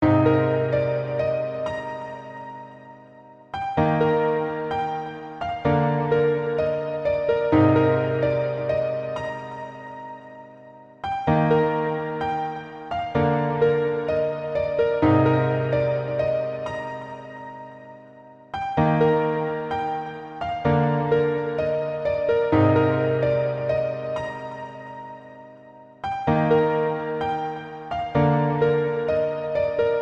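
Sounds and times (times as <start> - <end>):
piano melody: 0.0 - 30.0.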